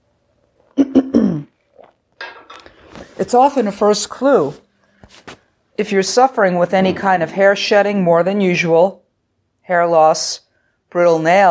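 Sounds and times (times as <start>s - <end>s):
person sipping ginger tea: 1.6s - 3.2s
speech: 3.2s - 5.2s, 5.8s - 9.0s, 9.7s - 11.5s.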